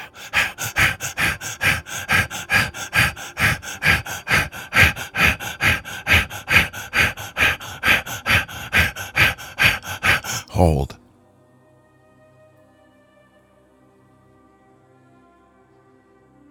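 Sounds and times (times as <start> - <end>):
rapid forceful breathing during a guided breathing exercise: 0.0 - 11.0
speech: 10.6 - 10.9.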